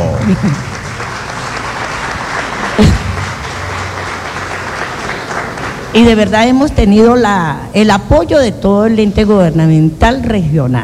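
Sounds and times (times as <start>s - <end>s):
audience applause: 0.0s - 6.4s
speech: 0.3s - 0.7s, 6.0s - 10.8s.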